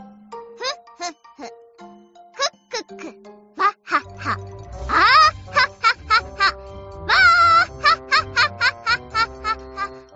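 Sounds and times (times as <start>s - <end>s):
person laughing: 2.4s - 10.0s.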